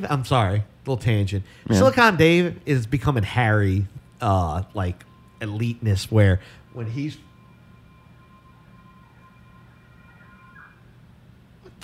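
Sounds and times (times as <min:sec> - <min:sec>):
speech: 0:00.0 - 0:07.3
low steady hum: 0:00.0 - 0:11.8
unusual siren wailing outside: 0:05.0 - 0:11.3.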